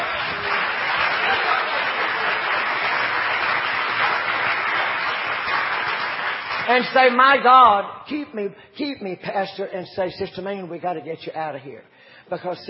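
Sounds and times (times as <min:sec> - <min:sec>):
audience clapping hands: 0:00.0 - 0:07.5
speech: 0:06.7 - 0:12.6.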